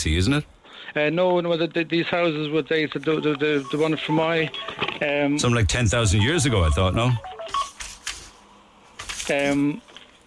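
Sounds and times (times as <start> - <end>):
speech: 0.0 - 7.4, 9.3 - 9.9
electronic telephone chirp: 3.1 - 5.2, 6.0 - 7.8.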